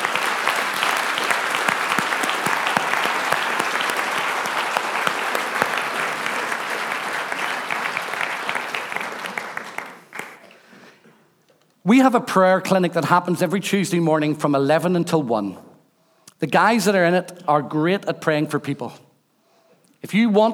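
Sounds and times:
audience applause: 0.0s - 10.5s
speech: 11.9s - 15.7s, 16.4s - 19.0s, 20.0s - 20.5s.

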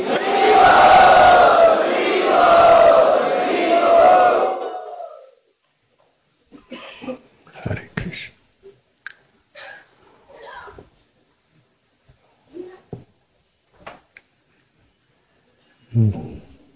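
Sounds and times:
crowd at Sri Radha Gopinath Temple loudly chanting a welcome in unison: 0.0s - 5.3s.

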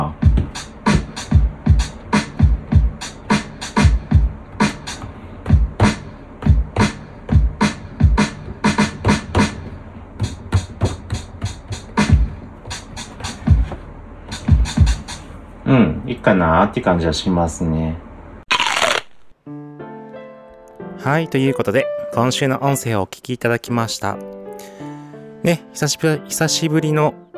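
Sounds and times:
programmed drum machine beat with kick, snare and hi-hat: 0.0s - 9.6s, 10.2s - 15.2s
speech: 16.2s - 18.1s, 21.0s - 24.4s, 25.4s - 27.3s.

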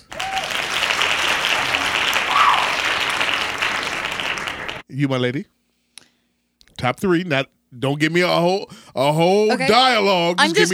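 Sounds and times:
hand claps sound effect: 0.0s - 4.8s
speech: 5.0s - 5.6s, 6.8s - 10.7s.

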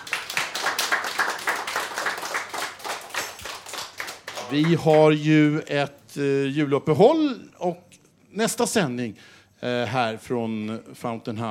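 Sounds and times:
applause: 0.0s - 5.3s
speech: 4.5s - 11.4s.

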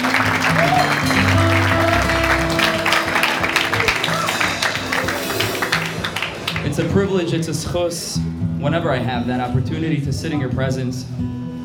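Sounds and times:
round of applause: 0.0s - 7.1s
speech: 6.9s - 11.4s.

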